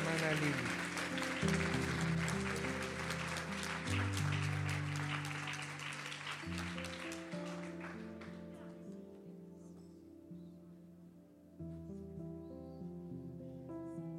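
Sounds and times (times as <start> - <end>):
audience clapping: 0.0 - 8.9
sustained keyboard chords: 0.0 - 14.1
speech: 0.2 - 1.6.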